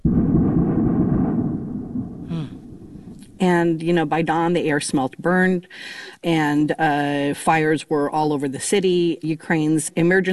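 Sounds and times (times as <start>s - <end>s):
loud explosions from air strikes: 0.0s - 5.0s
speech: 3.4s - 10.3s.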